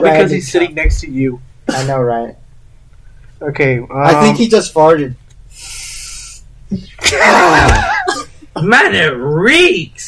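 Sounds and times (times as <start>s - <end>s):
speech: 0.0s - 2.4s, 3.4s - 5.8s, 6.7s - 10.0s
loud sniff: 5.5s - 6.4s.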